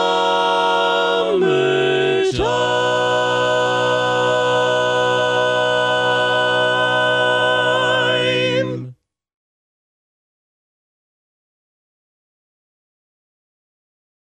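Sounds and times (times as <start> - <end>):
tenor singing: 0.0 - 9.0.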